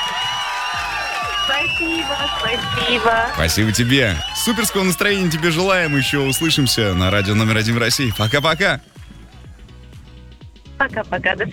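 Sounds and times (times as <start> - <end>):
whoops and shouting voices: 0.0 - 9.1
crowd applause and cheering: 0.0 - 10.6
speech: 1.5 - 9.0, 10.8 - 11.5.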